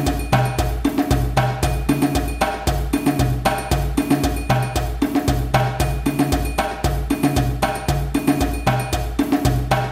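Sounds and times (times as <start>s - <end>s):
djembe groove at fast tempo: 0.0s - 9.9s.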